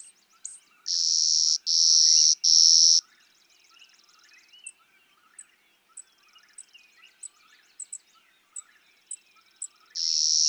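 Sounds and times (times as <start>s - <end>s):
clay-colored sparrow buzzy song: 0.0s - 10.4s.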